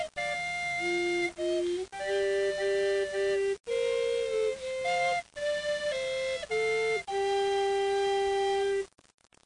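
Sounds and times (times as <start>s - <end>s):
recorder: 0.0s - 9.4s.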